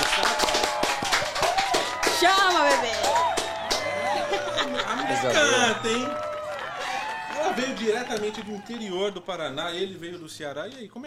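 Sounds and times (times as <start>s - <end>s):
studio crew applauding: 0.0s - 10.2s
laughter: 2.8s - 9.5s
speech: 4.8s - 6.3s, 7.4s - 11.0s.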